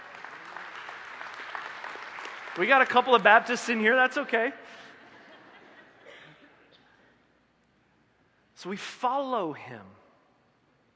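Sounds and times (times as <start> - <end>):
room full of people clapping: 0.0 - 4.3
speech: 2.6 - 4.8, 8.6 - 10.0
laughter: 4.7 - 6.7.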